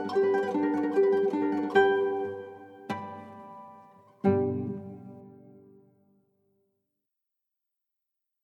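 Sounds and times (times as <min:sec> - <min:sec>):
Catalan guitar music: 0:00.0 - 0:05.9.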